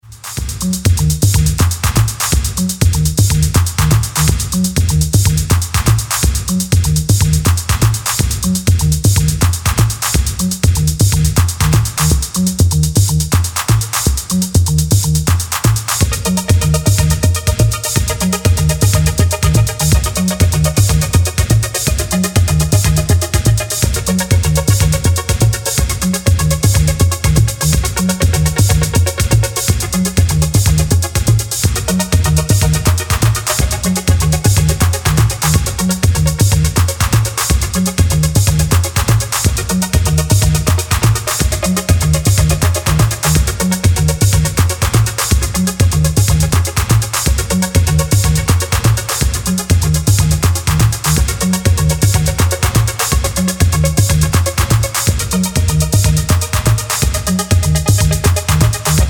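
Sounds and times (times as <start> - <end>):
instrumental music: 0.1 - 59.0.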